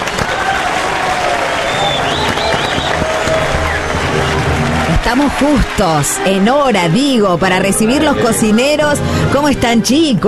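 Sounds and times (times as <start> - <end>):
crowd applauding: 0.0 - 9.0
faint whistles and voices: 1.6 - 3.0
speech: 5.1 - 10.2.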